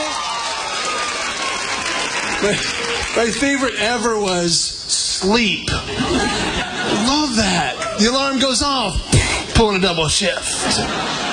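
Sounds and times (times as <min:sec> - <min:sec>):
crowd clapping: 0:00.0 - 0:04.4
laughter: 0:01.8 - 0:03.7, 0:05.7 - 0:11.3
speech: 0:02.4 - 0:11.3.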